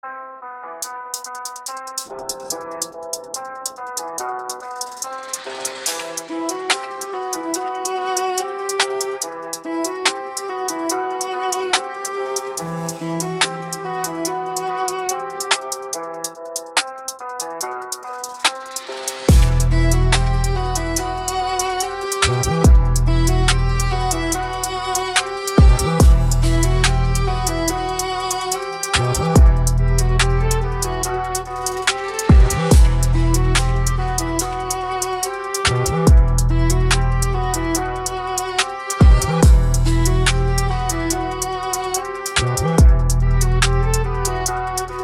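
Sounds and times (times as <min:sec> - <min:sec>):
drill beat: 0:00.8 - 0:45.0.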